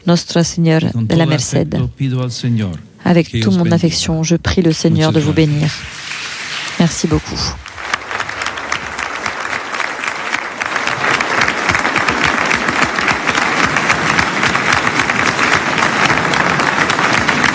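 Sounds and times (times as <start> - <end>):
speech: 0.0 - 6.0, 6.8 - 7.7
large audience applauding after a speech: 5.0 - 17.5.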